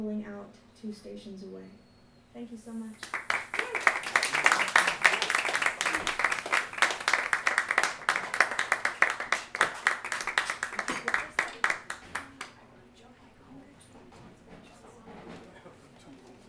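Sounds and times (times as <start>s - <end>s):
speech: 0.0s - 3.8s
audience applause: 3.0s - 12.6s.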